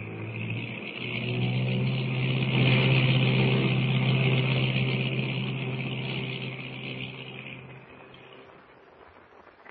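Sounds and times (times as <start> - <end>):
small plane engine landing on water and taxiing: 0.0 - 8.9.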